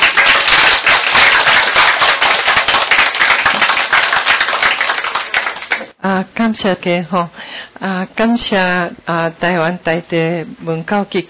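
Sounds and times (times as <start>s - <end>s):
audience applause: 0.0s - 6.0s
speech: 6.2s - 11.2s.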